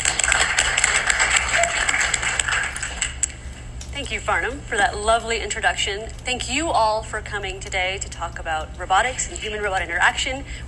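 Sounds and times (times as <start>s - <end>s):
audience applause welcoming a speaker to a lecture: 0.0s - 3.4s
speech: 4.0s - 10.6s.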